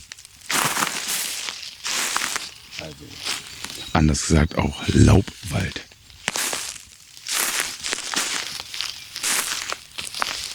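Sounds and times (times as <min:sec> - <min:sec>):
footsteps in beech forest leaf litter: 0:00.0 - 0:03.8, 0:06.3 - 0:10.5
speech: 0:02.8 - 0:05.9.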